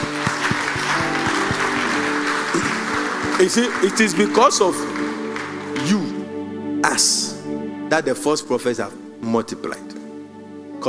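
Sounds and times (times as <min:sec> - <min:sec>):
audience clapping: 0:00.0 - 0:06.3
speech: 0:03.4 - 0:05.0, 0:07.0 - 0:07.3, 0:07.9 - 0:09.9.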